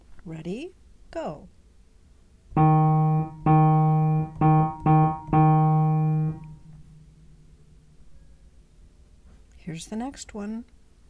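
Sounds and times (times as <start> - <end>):
speech: 0.2 - 1.6, 9.8 - 10.8
short forte rhythm played on one key: 2.6 - 7.8.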